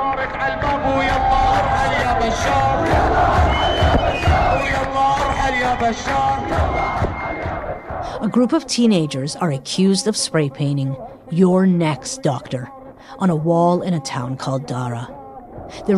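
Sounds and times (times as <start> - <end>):
protest crowd chanting and shouting at a demonstration: 0.0 - 15.9
speech: 5.7 - 7.5, 8.2 - 15.9.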